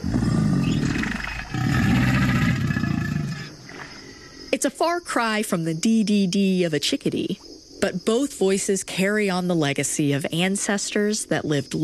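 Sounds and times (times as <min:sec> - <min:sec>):
alligator growling: 0:00.0 - 0:03.7
speech: 0:04.6 - 0:11.8.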